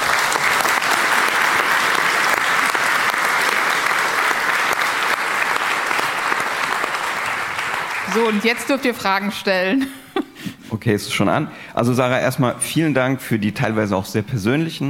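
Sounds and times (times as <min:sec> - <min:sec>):
audience applause: 0:00.0 - 0:09.4
speech: 0:08.2 - 0:10.0, 0:10.8 - 0:14.8.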